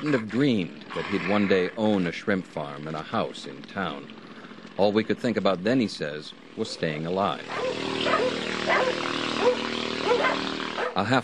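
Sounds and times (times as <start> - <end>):
speech: 0.0 - 4.2, 4.8 - 11.2
watchdogs barking an alarm: 6.6 - 11.0.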